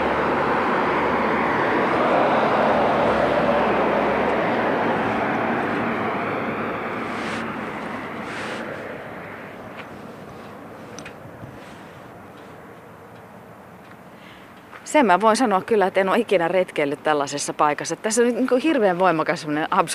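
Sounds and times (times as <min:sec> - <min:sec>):
heavy truck driving past: 0:00.0 - 0:14.7
speech: 0:14.9 - 0:19.9.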